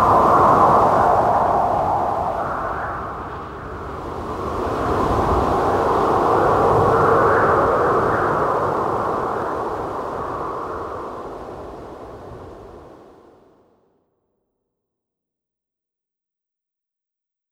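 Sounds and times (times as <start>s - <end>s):
wind: 0.0s - 13.8s.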